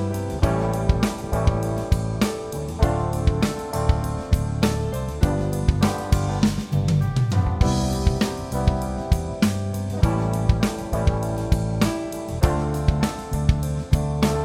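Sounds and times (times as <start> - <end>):
Cmaj7 A7 Dm7 G7 chord progression: 0.0 - 14.4.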